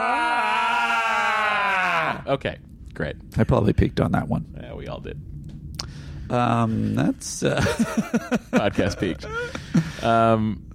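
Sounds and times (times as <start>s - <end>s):
person imitating a Klingon death scream: 0.0s - 2.3s
speech: 2.3s - 5.4s, 6.3s - 10.7s
laughter: 7.5s - 10.0s.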